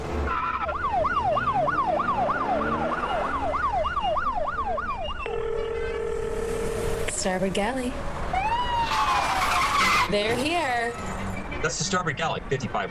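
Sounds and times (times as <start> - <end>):
road rumble: 0.0 - 12.9
police siren: 0.2 - 7.2, 8.2 - 10.1
speech: 7.2 - 8.1, 10.1 - 12.9.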